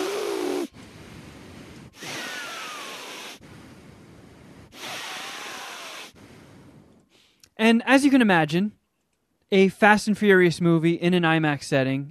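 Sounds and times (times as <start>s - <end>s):
voice imitating heavy nasal breathing: 0.0s - 7.6s
speech: 7.6s - 8.8s, 9.5s - 12.0s.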